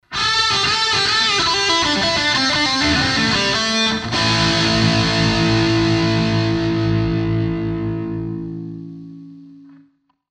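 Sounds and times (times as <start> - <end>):
guitar: 0.0 - 10.2.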